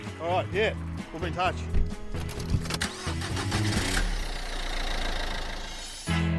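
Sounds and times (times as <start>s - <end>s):
speech: 0.2s - 2.0s
car engine starting: 1.8s - 6.2s.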